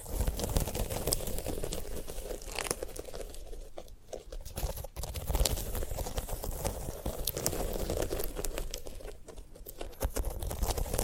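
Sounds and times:
sunflower head being handled, crackling and crinkling: 0.0s - 11.0s.

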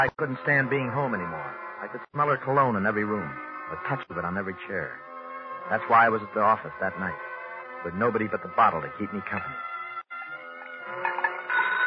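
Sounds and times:
speech: 0.0s - 5.1s, 5.7s - 9.7s
telephone ringing: 10.1s - 11.8s.

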